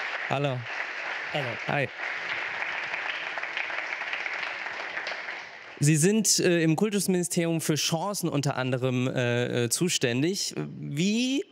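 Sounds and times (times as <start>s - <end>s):
audience applause: 0.0s - 6.3s
speech: 0.3s - 2.2s, 5.8s - 11.5s.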